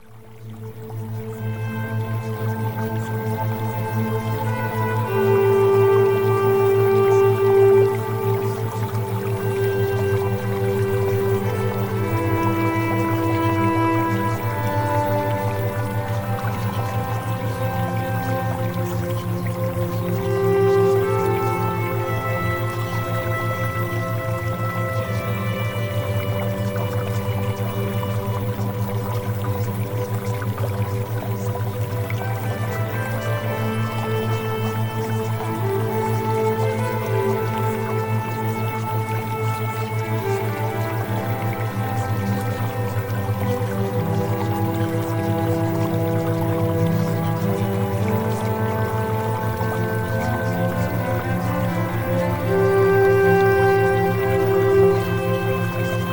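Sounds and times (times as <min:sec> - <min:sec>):
theta wave music: 0:00.0 - 0:56.1.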